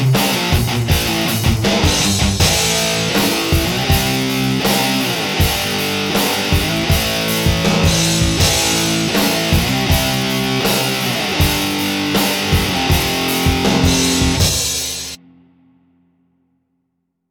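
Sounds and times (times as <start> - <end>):
metal guitar attack: 0.0 - 15.8.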